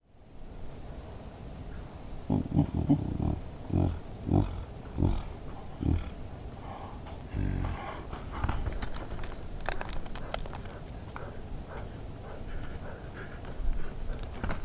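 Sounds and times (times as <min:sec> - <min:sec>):
snow leopard chuffing: 0:02.3 - 0:14.4.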